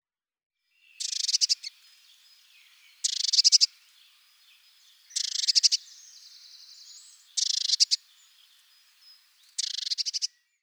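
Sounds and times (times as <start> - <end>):
Eurasian blue tit song: 0.7 - 10.6.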